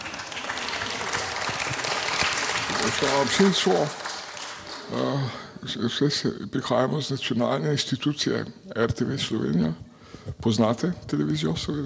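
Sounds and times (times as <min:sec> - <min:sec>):
audience applause: 0:00.0 - 0:05.4
speech: 0:02.8 - 0:04.0, 0:04.9 - 0:11.8.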